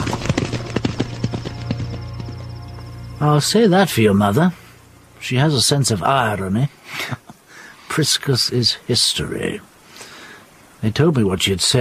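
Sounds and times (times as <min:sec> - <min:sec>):
horses galloping away, hooves clip-clopping: 0:00.0 - 0:03.3
low hum: 0:00.0 - 0:06.8
speech: 0:03.2 - 0:04.6, 0:05.2 - 0:07.2, 0:08.0 - 0:09.7, 0:10.8 - 0:11.7.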